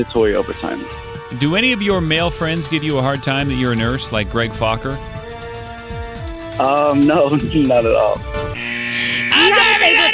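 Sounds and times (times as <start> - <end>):
speech: 0.0 - 5.1, 6.6 - 8.7
electric buzzer: 8.4 - 10.1.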